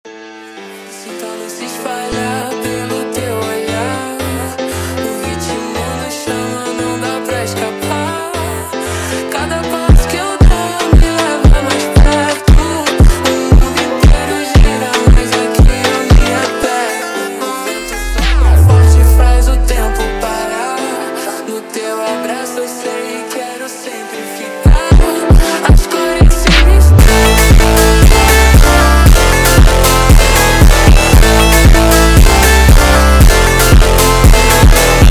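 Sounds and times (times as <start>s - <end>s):
slowed montagem music: 9.7s - 22.4s, 24.6s - 35.0s.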